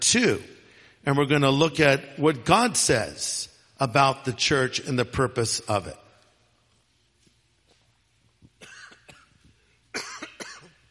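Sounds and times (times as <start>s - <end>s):
speech: 0.1s - 6.0s
person coughing after choking on drinking water: 8.6s - 10.8s.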